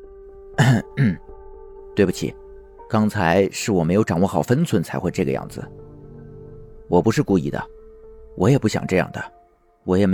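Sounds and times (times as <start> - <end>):
throat clearing: 0.6 - 1.2
speech: 1.0 - 1.3, 2.0 - 5.9, 6.9 - 7.8, 8.4 - 10.1.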